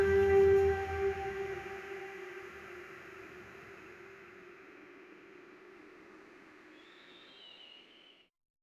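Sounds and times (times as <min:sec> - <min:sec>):
cinematic orchestral background music: 0:00.0 - 0:02.6.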